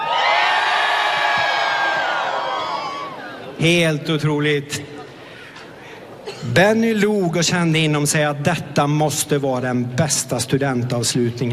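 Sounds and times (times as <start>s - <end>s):
large crowd cheering and shouting jubilantly: 0.0s - 3.6s
speech: 3.6s - 5.0s, 6.4s - 11.5s.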